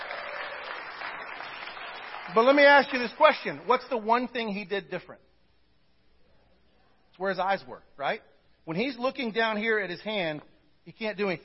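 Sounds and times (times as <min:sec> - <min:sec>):
audience round of applause: 0:00.0 - 0:03.6
speech: 0:02.3 - 0:05.3, 0:07.2 - 0:11.4.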